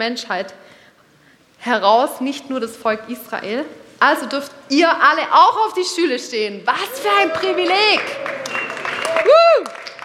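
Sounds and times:
speech: 0:00.0 - 0:00.8, 0:01.6 - 0:08.4, 0:09.1 - 0:09.8
group clapping: 0:06.9 - 0:10.0.

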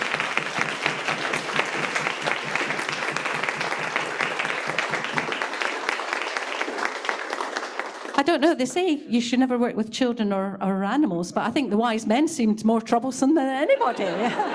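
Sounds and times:
audience round of applause: 0:00.0 - 0:08.4
speech: 0:08.2 - 0:14.5
laughter: 0:13.6 - 0:14.5.

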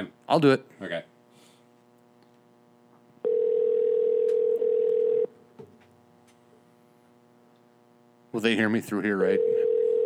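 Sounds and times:
speech: 0:00.0 - 0:01.1, 0:08.4 - 0:09.6
telephone dial tone while calling a store: 0:03.2 - 0:05.3, 0:09.4 - 0:10.0.

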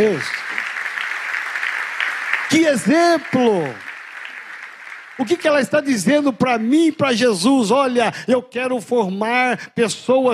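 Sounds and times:
speech: 0:00.0 - 0:00.4, 0:02.5 - 0:03.9, 0:05.2 - 0:10.3
audience applause: 0:00.0 - 0:07.1.

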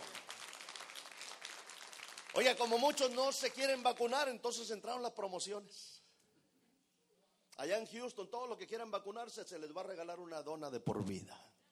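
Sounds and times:
audience applause: 0:00.0 - 0:03.3
speech: 0:02.4 - 0:06.0, 0:07.6 - 0:11.6.

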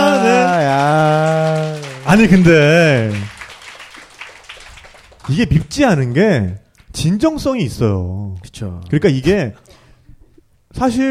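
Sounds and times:
scattered applause from a small crowd: 0:00.0 - 0:07.0
speech: 0:02.1 - 0:03.3, 0:05.3 - 0:09.6, 0:10.8 - 0:11.0.

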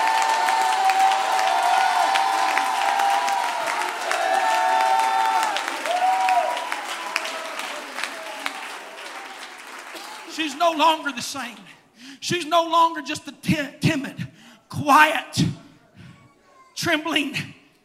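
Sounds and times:
audience shouting: 0:00.0 - 0:10.4
audience clapping: 0:00.0 - 0:11.7
speech: 0:10.7 - 0:15.5, 0:16.8 - 0:17.6.

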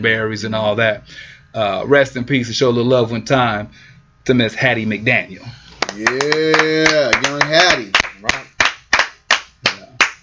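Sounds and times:
speech: 0:00.0 - 0:08.4
hands clapping: 0:05.8 - 0:10.2.

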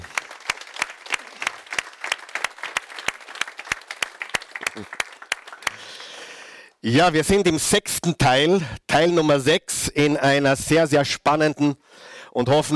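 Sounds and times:
audience applause: 0:00.0 - 0:06.4
speech: 0:04.8 - 0:05.0, 0:06.8 - 0:12.7.

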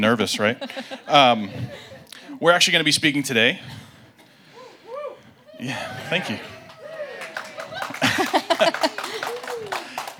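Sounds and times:
laughter: 0:00.0 - 0:02.4, 0:05.0 - 0:10.1
speech: 0:00.0 - 0:03.9, 0:05.6 - 0:06.5, 0:08.0 - 0:09.8
audience applause during church service: 0:05.7 - 0:10.1.

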